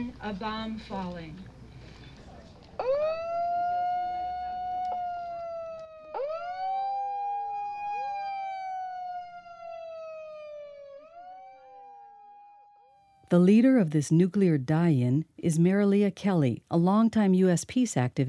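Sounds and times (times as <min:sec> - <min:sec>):
speech: 0:00.0 - 0:01.6, 0:13.3 - 0:18.2
air raid alarm siren: 0:02.8 - 0:13.2.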